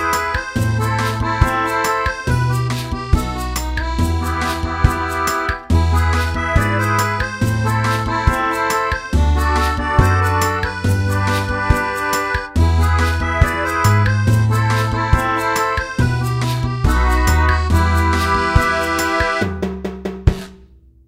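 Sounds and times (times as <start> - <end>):
instrumental music: 0.0 - 21.0.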